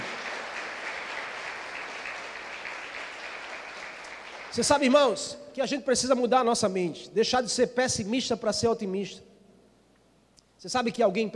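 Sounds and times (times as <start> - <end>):
audience applause: 0.0 - 4.9
speech: 4.5 - 9.3, 10.6 - 11.3.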